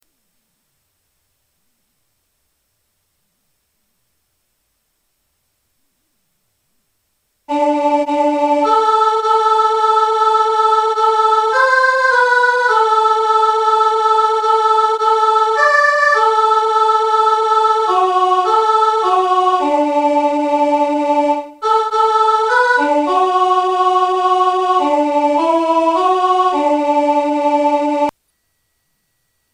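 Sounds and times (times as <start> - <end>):
soprano singing: 7.5 - 28.1.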